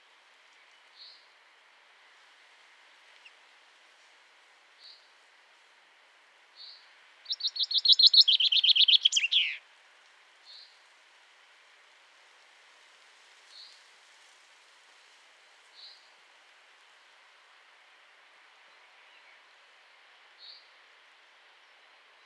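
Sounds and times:
common chaffinch call: 0:07.3 - 0:09.6.

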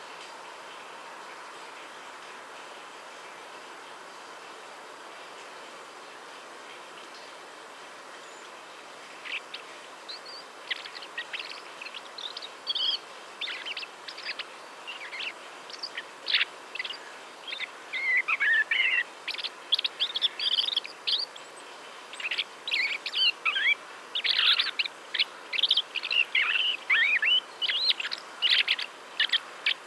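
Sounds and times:
common blackbird chirps and twittering: 0:09.2 - 0:29.8.

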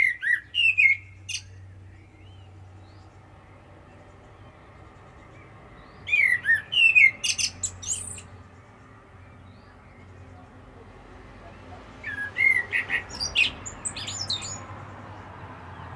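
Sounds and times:
common blackbird whistling and twittering: 0:00.0 - 0:03.0, 0:05.8 - 0:08.3, 0:12.0 - 0:14.7.

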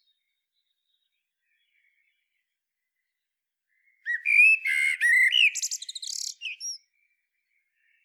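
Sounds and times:
common blackbird song: 0:00.0 - 0:08.0.

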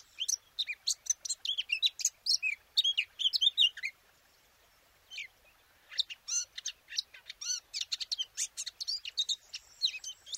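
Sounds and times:
Eurasian blackcap song: 0:00.0 - 0:10.3.

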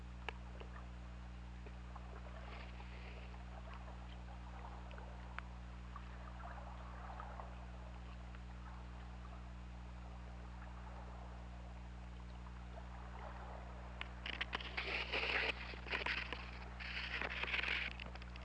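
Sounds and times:
whale clicks: 0:00.1 - 0:09.6, 0:10.4 - 0:18.4.

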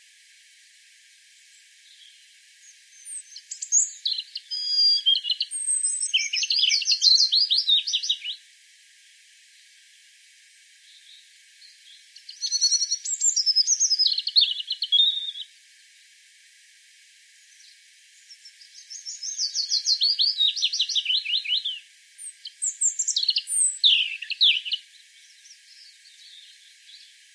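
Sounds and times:
European robin singing: 0:01.8 - 0:08.4, 0:10.9 - 0:15.5, 0:18.3 - 0:27.1.

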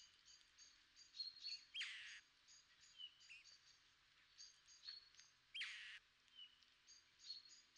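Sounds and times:
Pyrrhula pyrrhula calling: 0:01.7 - 0:02.2, 0:05.5 - 0:06.0.

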